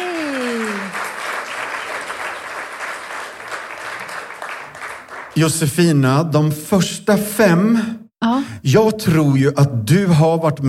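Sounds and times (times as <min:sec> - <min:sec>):
audience applause: 0:00.0 - 0:05.4
speech: 0:05.4 - 0:10.6.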